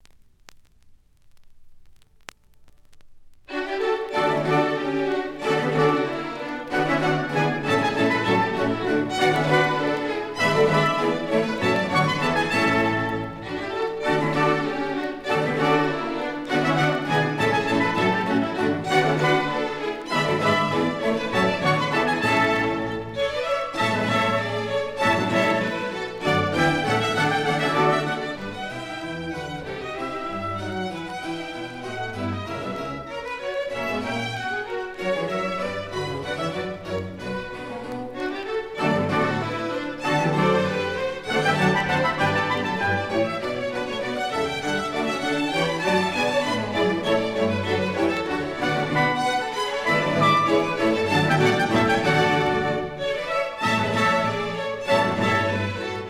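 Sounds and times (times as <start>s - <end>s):
baroque dance piece: 1.6s - 56.0s.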